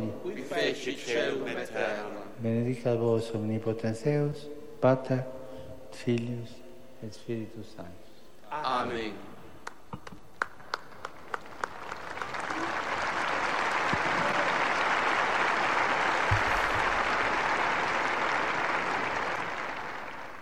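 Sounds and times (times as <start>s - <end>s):
speech: 0.5s - 9.3s
applause at the end of the general audience in Saint Peter's Square: 9.6s - 20.4s.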